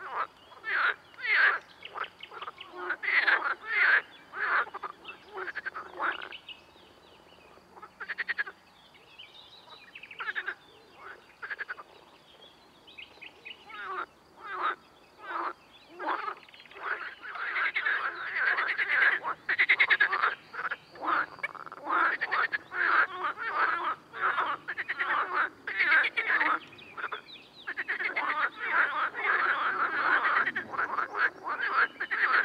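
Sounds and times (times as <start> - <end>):
amphibian ambience: 0.0 - 6.5, 13.1 - 32.4.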